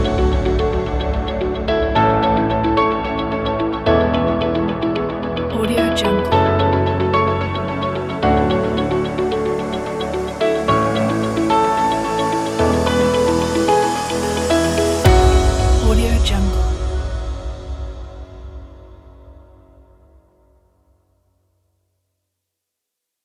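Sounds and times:
upbeat business corporate music: 0.0 - 17.8.

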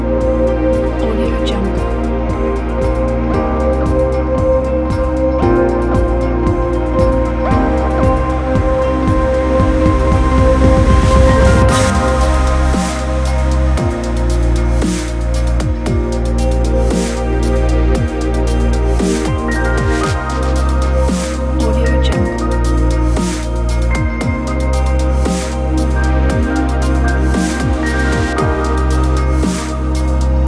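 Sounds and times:
atmospheric electronic chill music: 0.0 - 30.4.

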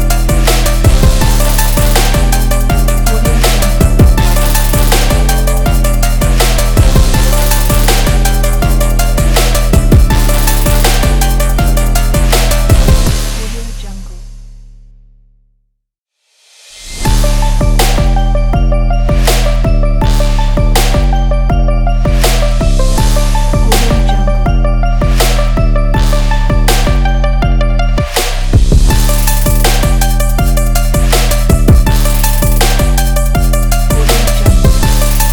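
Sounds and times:
powerful trap beat: 0.0 - 14.5, 16.8 - 35.3.

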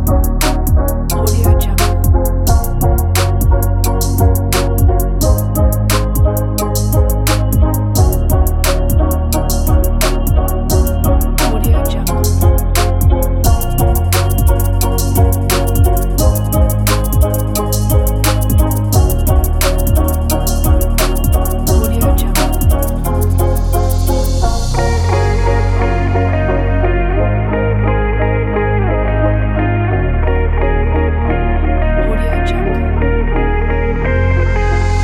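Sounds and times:
downtempo ambient guitar: 0.0 - 35.0.

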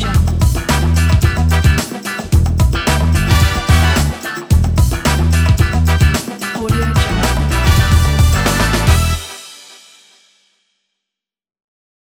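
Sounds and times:
funky bumper logo jingle: 0.2 - 9.4.

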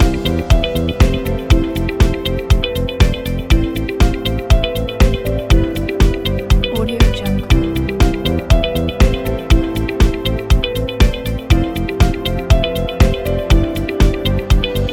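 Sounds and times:
upbeat corporate background music: 0.0 - 14.9.

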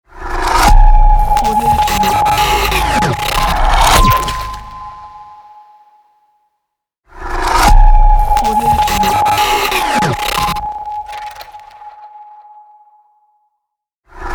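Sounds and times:
short glitch logo sound: 0.4 - 5.6, 7.6 - 12.0.

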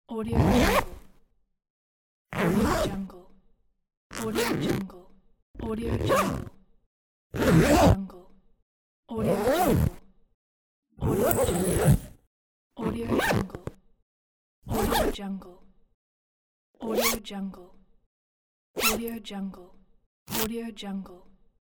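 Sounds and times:
zipper: 0.3 - 1.2, 2.3 - 3.1, 4.1 - 4.9, 5.6 - 6.6, 7.3 - 8.0, 9.2 - 10.0, 11.0 - 13.8, 14.6 - 15.2, 16.9 - 17.2, 18.8 - 19.2, 20.3 - 20.5.

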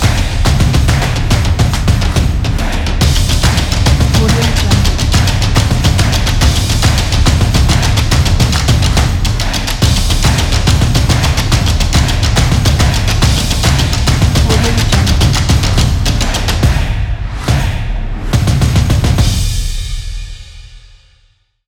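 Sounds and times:
percussion: 0.0 - 21.3.

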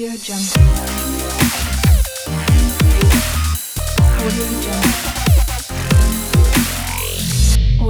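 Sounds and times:
modern dubstep logo intro: 0.6 - 7.7.

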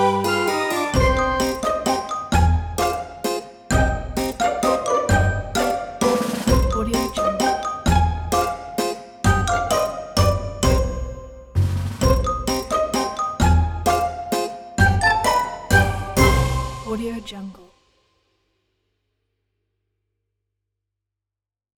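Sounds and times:
spooky fun Halloween music: 0.0 - 17.1.

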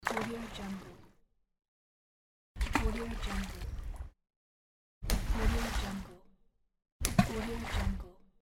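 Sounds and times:
splash: 0.0 - 0.9, 2.6 - 3.7, 5.1 - 6.2, 7.1 - 8.1.

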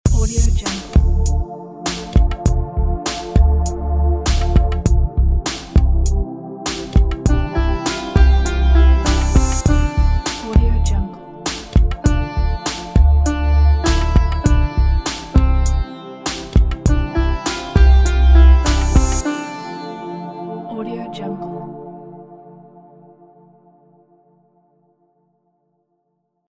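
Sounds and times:
ethnic fusion music: 0.1 - 20.6.

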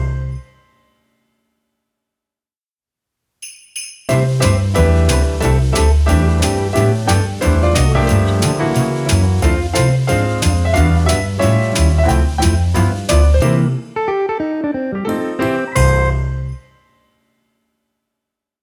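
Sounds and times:
christmas jazz music: 0.0 - 0.6, 3.5 - 16.8.

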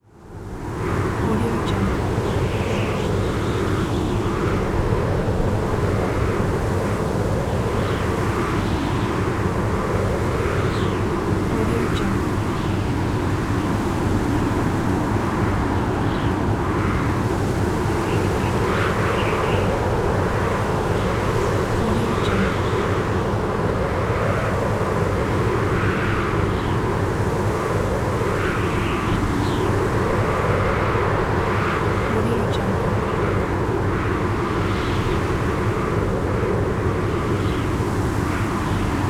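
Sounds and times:
blizzard wind: 0.1 - 39.0.

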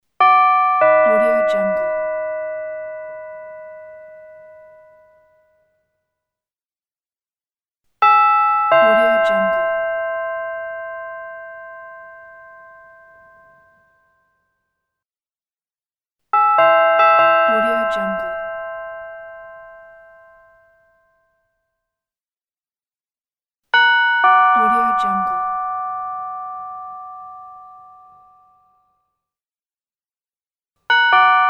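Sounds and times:
doorbell: 0.2 - 6.1, 8.0 - 14.6, 16.4 - 21.6, 23.8 - 29.0, 30.9 - 31.4.

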